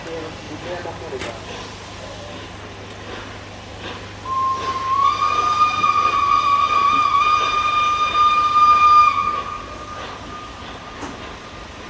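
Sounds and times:
rumbling chuffing steam train rolling on rails: 0.0 - 11.8
speech: 0.6 - 1.8
steam train whistle: 4.2 - 10.5.

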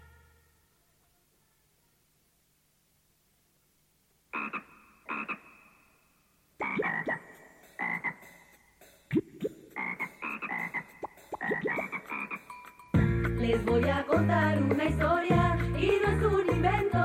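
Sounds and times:
frog croaking with rasping buzzy croaks: 4.3 - 12.6
speech: 13.5 - 16.9.

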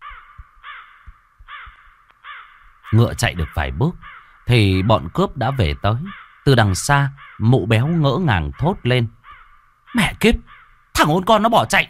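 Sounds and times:
flock of crows cawing chaotically: 0.0 - 11.2
speech: 2.9 - 9.2, 9.9 - 11.8.

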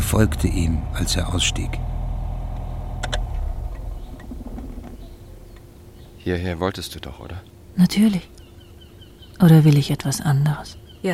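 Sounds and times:
car pulling into a parking lot: 0.0 - 6.3
speech: 0.1 - 1.9, 6.3 - 8.4, 9.4 - 11.1.

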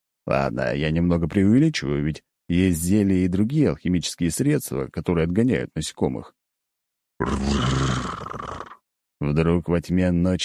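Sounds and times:
speech: 0.2 - 6.4, 7.2 - 8.3, 9.2 - 10.4
beast growling: 7.2 - 8.8.

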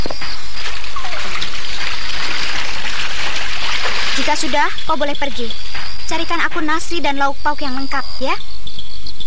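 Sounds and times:
water sloshing knocks: 0.2 - 6.1
warm water poured into a bathroom water tub: 0.5 - 5.4
speech: 4.3 - 8.5.

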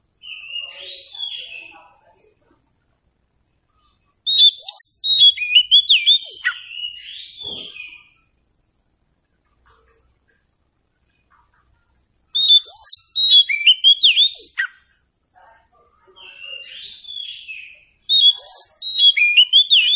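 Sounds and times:
Oriental magpie-robin singing: 0.2 - 1.8, 4.2 - 8.2, 12.4 - 14.8, 16.1 - 19.9.

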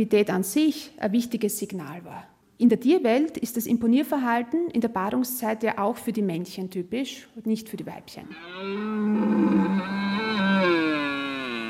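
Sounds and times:
speech: 0.0 - 10.0
red deer stag bellowing: 8.3 - 11.6.

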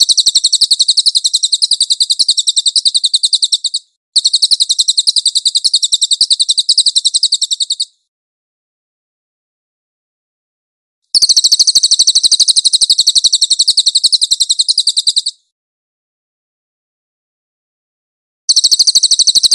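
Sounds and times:
cililin trilling: 0.0 - 8.0, 11.2 - 15.4, 18.5 - 19.5.

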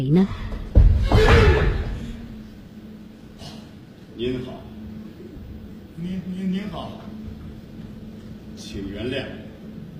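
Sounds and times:
speech: 0.0 - 1.6, 4.2 - 4.7, 6.0 - 7.1, 8.6 - 9.4
door being pushed open: 0.8 - 2.0.

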